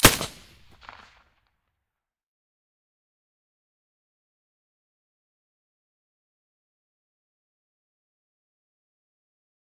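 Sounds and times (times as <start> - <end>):
suppressed gunshot: 0.0 - 1.1.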